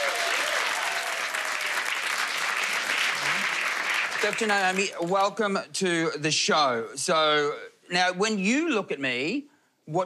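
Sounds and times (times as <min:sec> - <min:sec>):
audience applause welcoming a cosmetic doctor on stage: 0:00.0 - 0:05.0
speech: 0:04.2 - 0:10.0.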